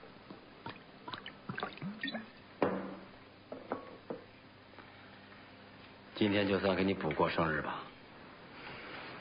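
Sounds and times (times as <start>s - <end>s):
liquor poured into bowls: 0.7s - 2.4s
speech: 6.2s - 7.9s.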